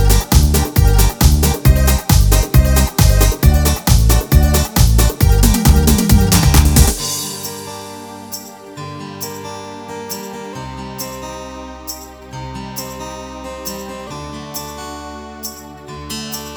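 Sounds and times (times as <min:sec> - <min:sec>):
pop dance music: 0:00.0 - 0:08.4.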